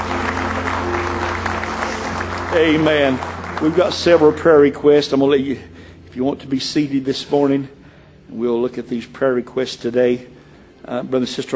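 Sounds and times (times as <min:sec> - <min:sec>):
church congregation clapping in praise: 0:00.0 - 0:05.3
speech: 0:02.5 - 0:11.5.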